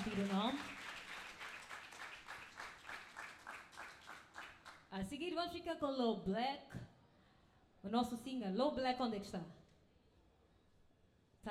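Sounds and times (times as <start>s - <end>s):
speech: 0.0s - 0.8s, 4.9s - 6.8s, 7.8s - 9.6s
audience applause: 0.0s - 4.8s.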